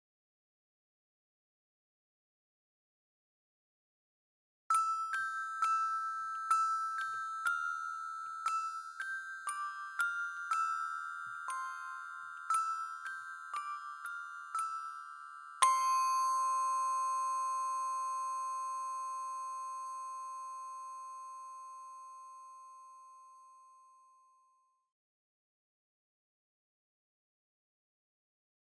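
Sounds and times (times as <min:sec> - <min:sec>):
music box: 0:04.7 - 0:24.7.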